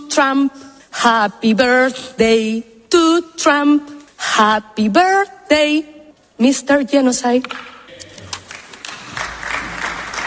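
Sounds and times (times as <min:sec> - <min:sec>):
speech: 0:00.2 - 0:07.7
small group of people clapping: 0:07.9 - 0:10.2.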